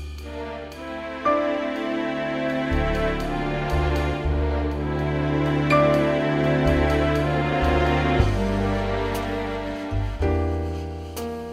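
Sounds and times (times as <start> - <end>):
brass music: 0.2 - 11.1.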